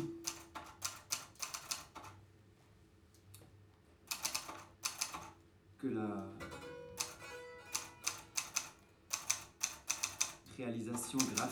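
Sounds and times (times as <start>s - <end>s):
typewriter keystrokes: 0.2s - 2.1s, 4.1s - 5.3s, 7.0s - 10.4s, 11.0s - 11.5s
speech: 5.8s - 6.5s, 10.6s - 11.5s.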